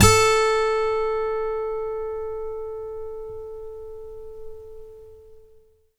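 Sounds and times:
guitar: 0:00.0 - 0:05.7.

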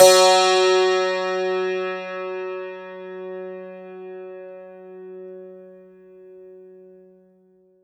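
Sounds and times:
santoor: 0:00.0 - 0:04.1.

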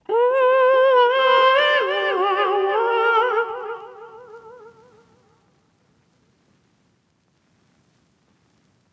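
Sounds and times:
wet soul vocal melodies in G minor: 0:00.0 - 0:05.2.

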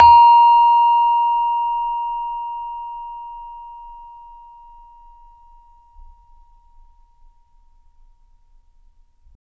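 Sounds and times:
saron A#3 note: 0:00.0 - 0:02.8.

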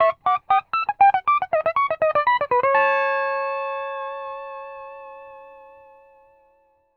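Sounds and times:
country music loop at 120 BPM: 0:00.0 - 0:02.8.

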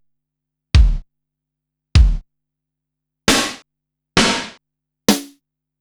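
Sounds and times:
Korg Wavestation-SR wave 455 drum kit: 0:00.8 - 0:01.0, 0:02.0 - 0:02.2, 0:03.3 - 0:05.4.

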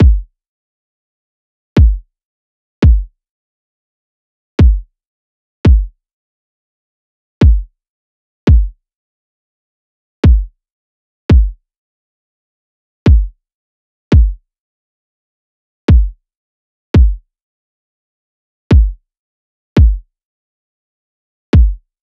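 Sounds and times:
kick drum loop: 0:00.0 - 0:00.3, 0:01.8 - 0:02.0, 0:02.8 - 0:03.1, 0:04.6 - 0:04.9, 0:05.7 - 0:05.9, 0:07.4 - 0:07.7, 0:08.5 - 0:08.7, 0:10.2 - 0:10.5, 0:11.3 - 0:11.6, 0:13.1 - 0:13.3, 0:14.1 - 0:14.4, 0:15.9 - 0:16.1, 0:17.0 - 0:17.2, 0:18.7 - 0:19.0, 0:19.8 - 0:20.0, 0:21.6 - 0:21.8.

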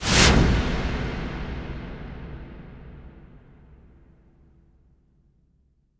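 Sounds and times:
wipe whoosh: 0:00.0 - 0:00.4
cinematic impact: 0:00.0 - 0:04.2.

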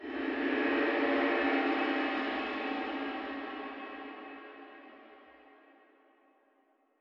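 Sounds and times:
slow dark cymbal: 0:00.0 - 0:05.8.

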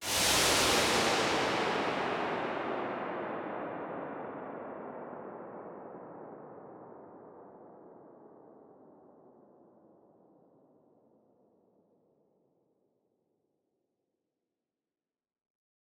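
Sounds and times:
reverberant noise decays: 0:00.0 - 0:04.4.

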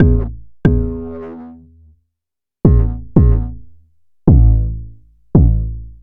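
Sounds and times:
kick drum: 0:00.0 - 0:01.0, 0:02.6 - 0:03.6, 0:04.3 - 0:06.0.

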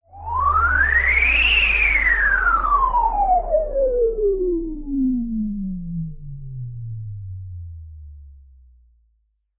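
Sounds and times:
Juno synthesizer noise: 0:00.2 - 0:07.7.

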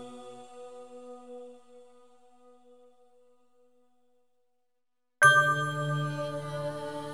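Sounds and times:
bell atmosphere: 0:05.2 - 0:07.0.

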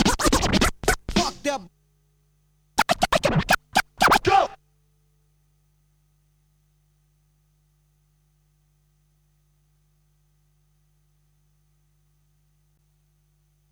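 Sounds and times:
scratching sounds: 0:00.0 - 0:01.2, 0:02.8 - 0:04.6.

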